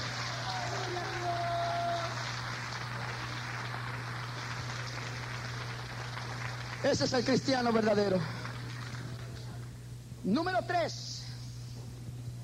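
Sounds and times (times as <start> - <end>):
applause: 0.0 - 9.7
speech: 6.8 - 8.4, 10.2 - 11.1.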